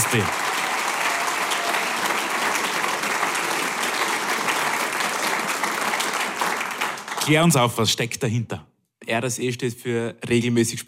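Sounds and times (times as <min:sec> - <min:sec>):
audience applause: 0:00.0 - 0:07.6
speech: 0:00.1 - 0:00.4, 0:07.2 - 0:10.8.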